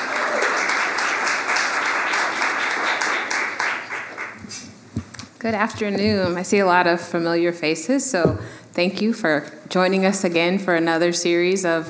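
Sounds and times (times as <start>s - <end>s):
audience applause: 0.0s - 4.6s
speech: 5.4s - 11.8s.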